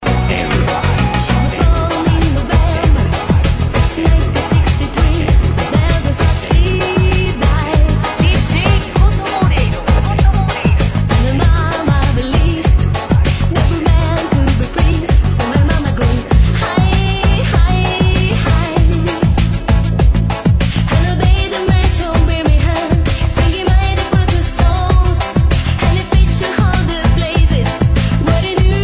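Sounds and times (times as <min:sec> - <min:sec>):
dub reggae pop music: 0:00.0 - 0:28.8.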